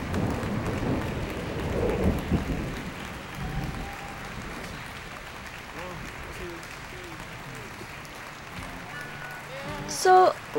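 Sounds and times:
distant thunder rumble: 0:00.0 - 0:06.5
crowd clapping and cheering: 0:00.0 - 0:10.5.

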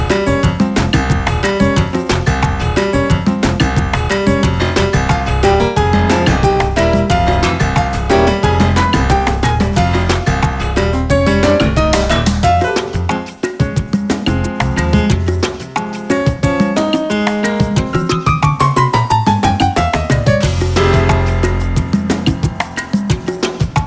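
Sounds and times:
instrumental piano jam: 0:00.0 - 0:23.8.

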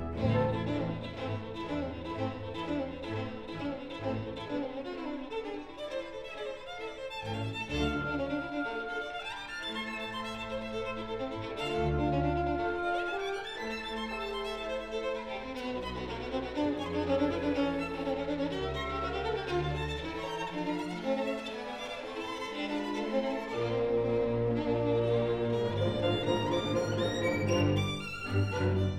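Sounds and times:
violin concerto allegro: 0:00.0 - 0:28.9.

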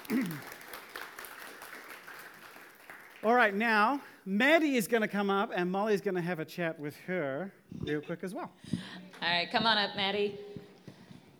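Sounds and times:
audience clapping: 0:00.0 - 0:04.0
speech: 0:03.2 - 0:10.5.

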